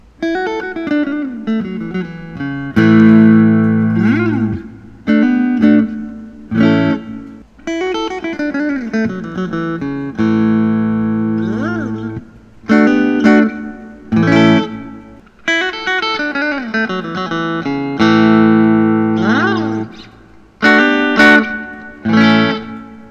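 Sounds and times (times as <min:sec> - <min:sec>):
blonde Fender Telecaster electric guitar: 0:00.0 - 0:23.0.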